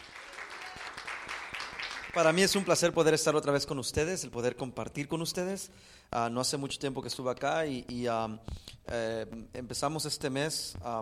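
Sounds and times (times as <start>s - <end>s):
audience applause: 0.0s - 2.4s
speech: 2.1s - 11.0s.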